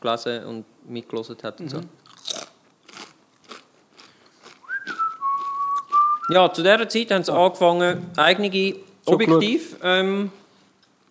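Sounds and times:
speech: 0:00.0 - 0:02.2, 0:06.3 - 0:10.4
potato chips being eaten: 0:02.0 - 0:06.3
sustained steady whistle tone: 0:04.7 - 0:06.4.

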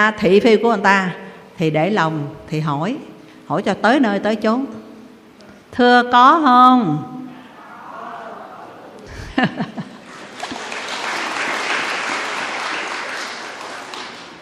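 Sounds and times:
speech: 0:00.0 - 0:04.8, 0:05.7 - 0:07.1, 0:09.4 - 0:09.8
laughter: 0:07.8 - 0:11.4
audience applause during a question-and-answer session: 0:10.0 - 0:14.4.

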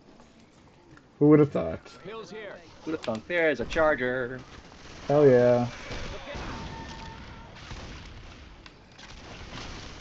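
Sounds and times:
speech: 0:01.2 - 0:06.5
grenade launcher blast and combat in Left 4 Dead 2: 0:03.6 - 0:10.0.

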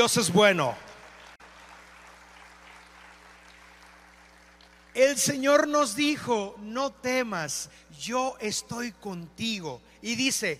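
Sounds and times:
speech: 0:00.0 - 0:00.9, 0:05.0 - 0:10.5
audience applause: 0:00.9 - 0:05.0.

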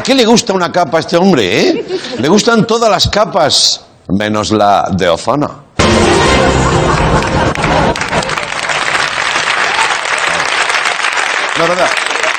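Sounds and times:
speech: 0:00.0 - 0:08.3, 0:11.6 - 0:12.0
audience applause: 0:06.1 - 0:12.3.

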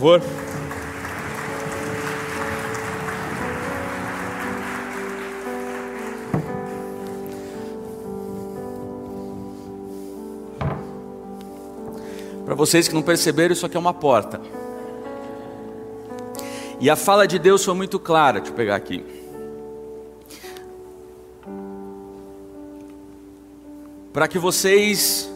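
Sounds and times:
speech: 0:00.0 - 0:00.5, 0:12.5 - 0:14.6, 0:16.8 - 0:19.2, 0:24.2 - 0:25.3
audience applause: 0:00.0 - 0:07.3.

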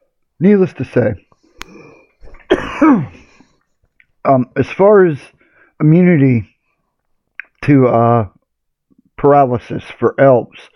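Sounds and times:
speech: 0:00.4 - 0:01.3, 0:02.8 - 0:03.2, 0:04.2 - 0:06.5, 0:07.7 - 0:08.3, 0:09.2 - 0:10.7
person coughing after something went down the wrong pipe: 0:02.4 - 0:03.5.

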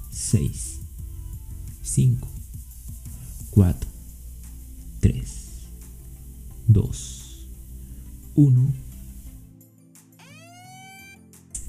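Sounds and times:
low droning background: 0:00.0 - 0:09.5
speech: 0:00.2 - 0:00.8, 0:01.9 - 0:02.4, 0:03.6 - 0:03.9, 0:05.0 - 0:05.4, 0:06.7 - 0:07.2, 0:08.4 - 0:08.8
cheap electronic alarm tone: 0:10.2 - 0:11.2.

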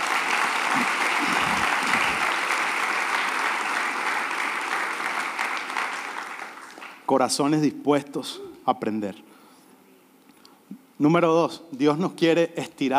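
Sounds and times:
church audience applause: 0:00.0 - 0:07.2
speech: 0:07.1 - 0:09.3, 0:11.0 - 0:12.9.

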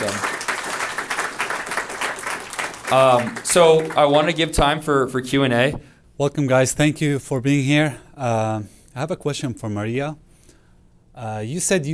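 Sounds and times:
audience applause: 0:00.0 - 0:05.0
speech: 0:02.9 - 0:10.2, 0:11.2 - 0:11.9.

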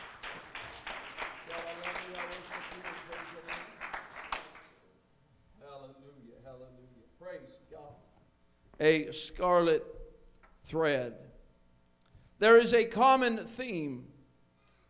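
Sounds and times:
audience hand clapping: 0:00.0 - 0:04.8
speech: 0:08.8 - 0:10.0, 0:10.7 - 0:11.3, 0:12.4 - 0:14.1.

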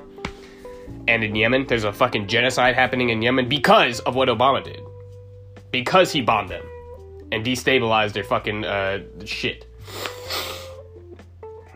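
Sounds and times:
speech: 0:01.1 - 0:04.9, 0:05.7 - 0:06.7, 0:07.3 - 0:10.5
faint snuffling: 0:09.8 - 0:10.8
sniff through the nose: 0:09.8 - 0:10.9.

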